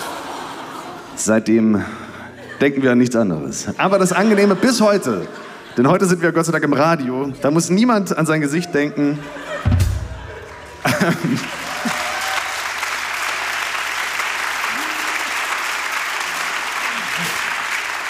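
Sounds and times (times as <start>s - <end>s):
laughter: 0.0s - 7.8s, 8.4s - 12.5s
speech: 1.2s - 9.4s, 10.8s - 11.6s
short audience applause: 10.2s - 18.0s.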